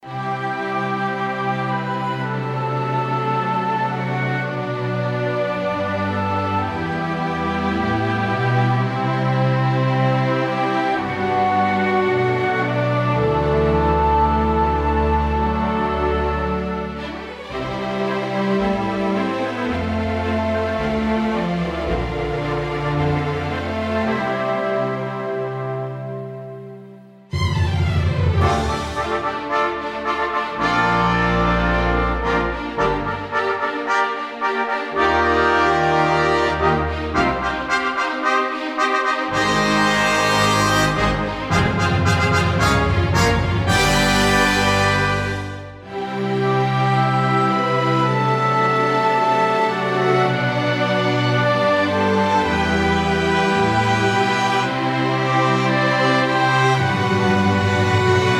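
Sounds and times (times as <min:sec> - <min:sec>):
triad chord music: 0:00.1 - 0:58.3.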